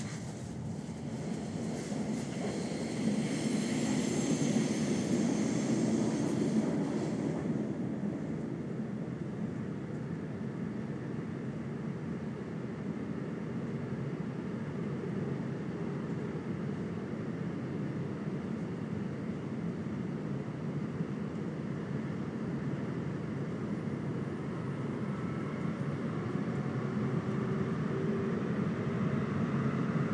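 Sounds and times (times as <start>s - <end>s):
high speed train: 0.0s - 30.1s.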